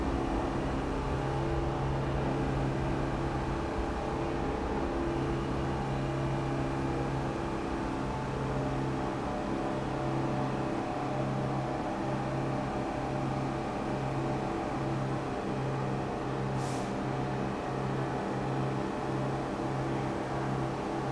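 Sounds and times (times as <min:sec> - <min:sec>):
subway station ambience in New York City: 0:00.0 - 0:21.1.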